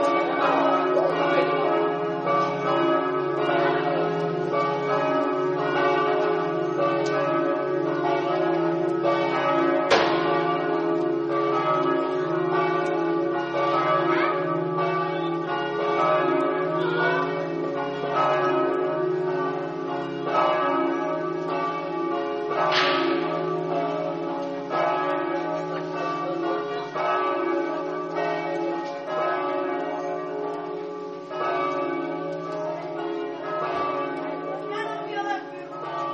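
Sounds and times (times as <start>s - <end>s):
bells: 0.0s - 36.1s.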